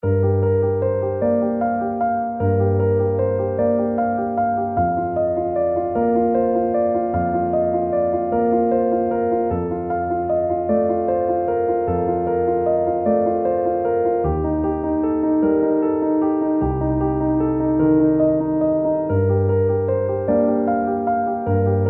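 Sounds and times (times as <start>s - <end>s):
piano music: 0.0s - 21.8s.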